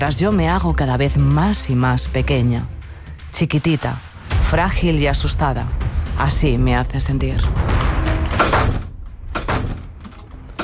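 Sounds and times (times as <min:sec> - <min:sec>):
speech: 0:00.0 - 0:07.8
doors opening and closing: 0:07.6 - 0:10.6.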